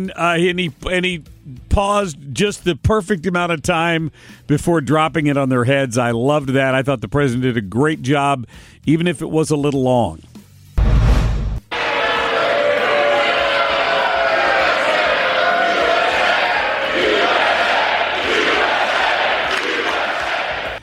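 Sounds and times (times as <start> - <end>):
speech: 0.0 - 10.3
crowd applause and cheering: 11.7 - 20.8.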